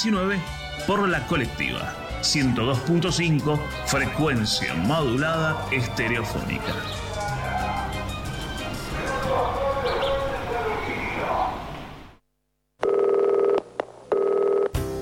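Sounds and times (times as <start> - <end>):
speech: 0.0 - 7.1
dense noisy sound: 4.6 - 12.2
electronic telephone keypad dialing tones: 12.8 - 14.8.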